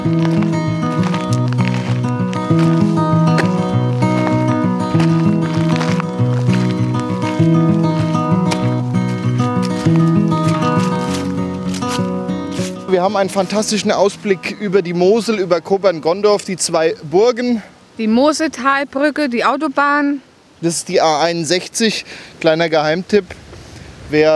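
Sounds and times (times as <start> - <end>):
instrumental music track: 0.0 - 16.5
speech: 13.1 - 23.4, 24.1 - 24.3.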